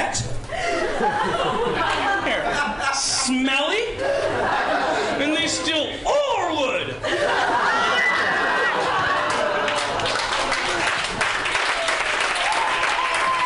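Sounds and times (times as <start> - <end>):
laughter: 0.5 - 3.2, 3.9 - 11.2
applause: 9.1 - 13.4.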